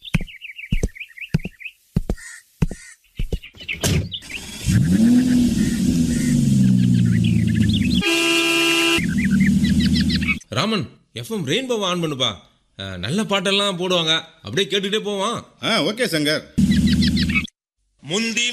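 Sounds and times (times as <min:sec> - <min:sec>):
sharp thumps: 0:00.0 - 0:04.2
birds chirping: 0:00.0 - 0:10.5, 0:16.6 - 0:17.6
car engine starting and revving: 0:04.2 - 0:10.4
loud sustained car horn blast: 0:08.0 - 0:09.1
speech: 0:10.6 - 0:16.8, 0:18.1 - 0:18.5.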